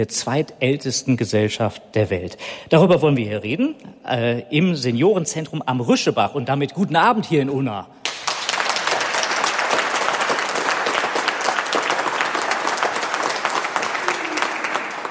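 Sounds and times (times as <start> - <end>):
speech: 0.0 - 8.1
people applauding: 8.0 - 15.0.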